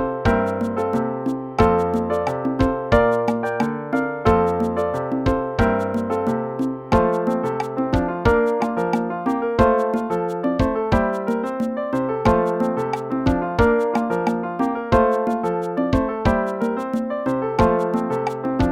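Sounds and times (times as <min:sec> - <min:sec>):
musical accompaniment: 0:00.0 - 0:18.7.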